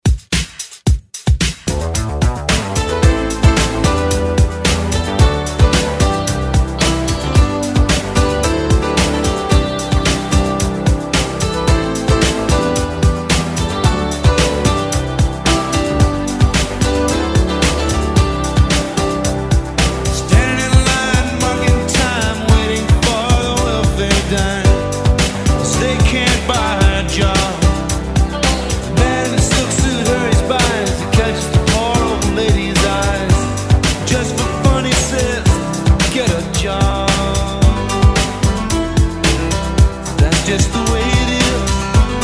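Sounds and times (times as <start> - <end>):
drum beat at 111 bpm: 0.0 - 42.2.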